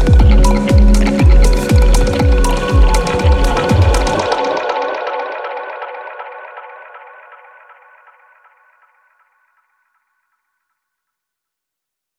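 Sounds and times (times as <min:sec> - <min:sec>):
experimental reworked foley textures: 0:00.0 - 0:07.3.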